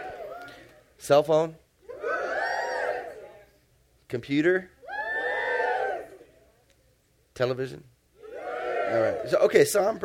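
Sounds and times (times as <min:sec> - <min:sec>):
crowd cheering and shouting: 0:00.0 - 0:00.7, 0:01.9 - 0:03.4, 0:04.8 - 0:06.3, 0:08.2 - 0:09.5
speech: 0:01.0 - 0:01.6, 0:04.1 - 0:04.8, 0:07.4 - 0:07.9, 0:08.9 - 0:10.0.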